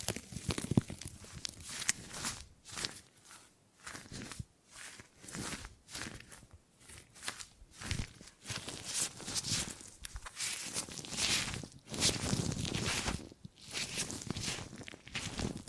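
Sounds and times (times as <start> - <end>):
gripping and grabbing rustling and scraping: 0.0 - 15.6.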